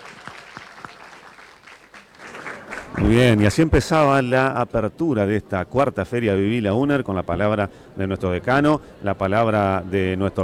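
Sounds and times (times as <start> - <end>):
sharp claps: 0.0 - 3.2
audience applause at a university fair opening: 0.0 - 3.4
speech: 3.0 - 10.4.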